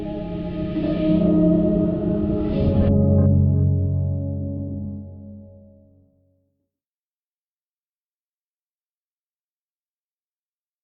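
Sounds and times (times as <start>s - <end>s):
piano house music: 0.2s - 5.8s.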